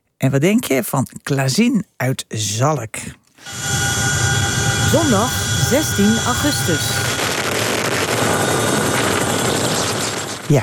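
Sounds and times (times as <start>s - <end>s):
speech: 0.2s - 3.8s, 4.9s - 7.1s, 10.5s - 10.6s
Dutch Chinook helicopter fighting a large wildfire in Belgium: 3.4s - 10.6s.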